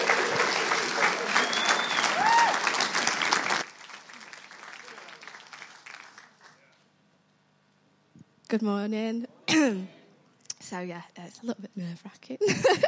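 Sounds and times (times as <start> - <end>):
crowd clapping: 0.0 - 6.8
speech: 8.5 - 10.0, 10.7 - 12.8.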